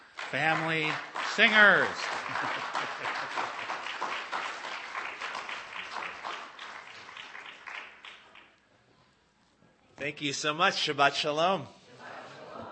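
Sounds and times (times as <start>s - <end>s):
congregational applause greeting a family of singers: 0.0s - 8.5s
speech: 0.3s - 3.6s, 10.0s - 11.8s
laughter: 2.0s - 3.9s, 11.9s - 12.7s.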